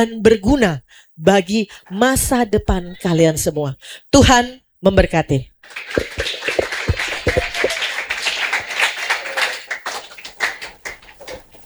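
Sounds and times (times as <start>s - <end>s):
speech: 0.0s - 6.3s
audience applause: 5.6s - 11.6s.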